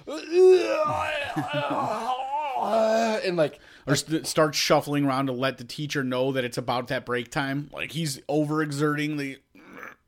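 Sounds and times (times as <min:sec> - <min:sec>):
voice imitating an exaggerated loud yawn: 0:00.0 - 0:03.4
speech: 0:00.1 - 0:09.4.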